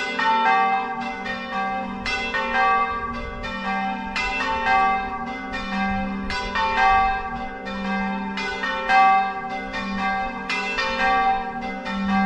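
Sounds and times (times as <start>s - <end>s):
bells ringing: 0.0s - 12.2s.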